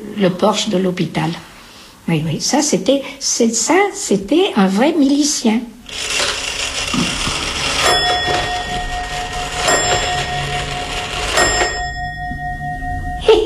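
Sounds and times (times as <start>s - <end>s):
speech: 0.2s - 1.5s, 2.1s - 7.1s
old Swiss pendulum clock chiming: 5.9s - 13.4s.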